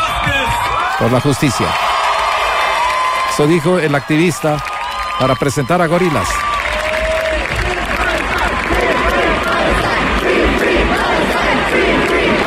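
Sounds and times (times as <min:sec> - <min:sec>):
concert audience cheering and applauding: 0:00.0 - 0:12.4
speech: 0:01.0 - 0:01.9, 0:03.4 - 0:06.4.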